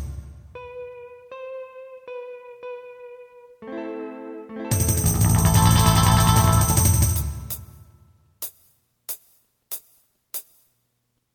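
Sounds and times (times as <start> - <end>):
twist synth lead: 4.7 - 7.7.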